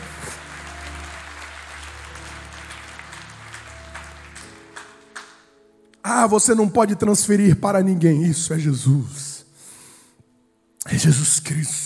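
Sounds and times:
audience applauding: 0.0s - 5.6s
speech: 6.0s - 9.3s, 11.0s - 11.8s.

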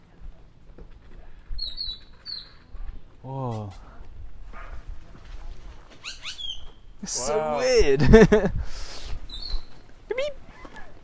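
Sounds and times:
mockingbird chirping: 0.0s - 7.1s, 9.0s - 11.0s
soft patter: 0.0s - 7.1s, 8.6s - 11.0s
speech: 3.2s - 3.9s, 7.0s - 8.8s
laughter: 7.0s - 9.3s, 10.1s - 11.0s.

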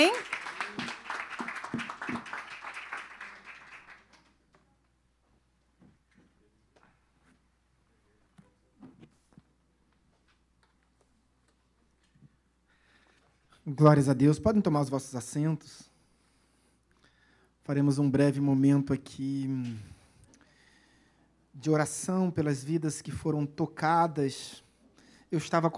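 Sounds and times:
audience applause: 0.0s - 4.3s
speech: 13.7s - 15.9s, 17.7s - 20.0s, 21.6s - 24.6s, 25.3s - 25.7s.

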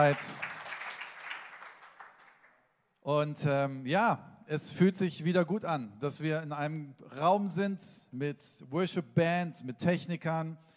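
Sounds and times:
speech: 0.0s - 0.4s, 3.1s - 10.7s
audience applause: 0.0s - 2.6s.

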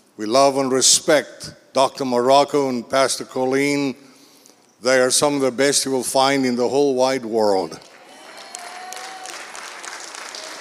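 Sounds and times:
speech: 0.2s - 4.1s, 4.8s - 7.9s
audience applause: 7.8s - 10.5s.

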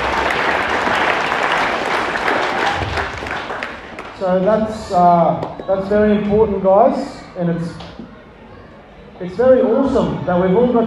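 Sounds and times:
crowd applauding: 0.0s - 5.6s
speech: 4.2s - 8.0s, 9.2s - 10.8s.

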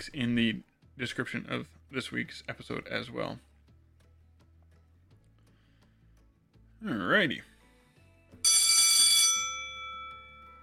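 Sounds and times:
speech: 0.0s - 3.5s, 6.8s - 7.5s
bell ringing: 8.4s - 10.6s.

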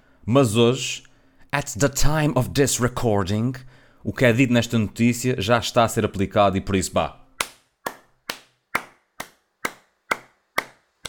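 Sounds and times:
speech: 0.3s - 7.2s
clapping: 7.4s - 11.0s.

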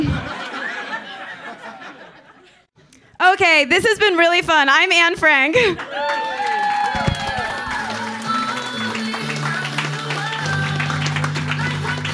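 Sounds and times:
laughter: 0.0s - 2.7s
speech: 3.3s - 6.3s
audience applause: 5.8s - 12.1s.

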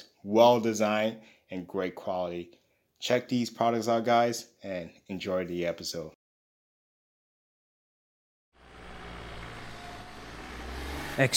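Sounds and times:
speech: 0.0s - 6.2s, 11.2s - 11.3s
car engine rumbling as the vehicle drives up: 8.6s - 11.3s.

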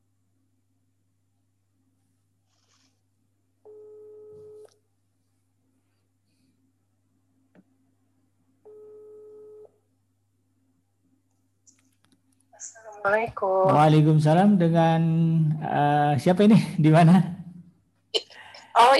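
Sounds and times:
ringback tones of an outgoing phone call to a radio listener: 8.7s - 9.7s
speech: 12.6s - 17.4s, 18.8s - 18.9s.

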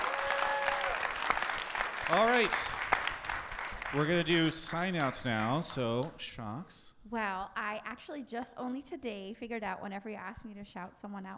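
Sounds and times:
audience applause: 0.0s - 6.1s
speech: 2.1s - 2.8s, 3.9s - 11.3s.

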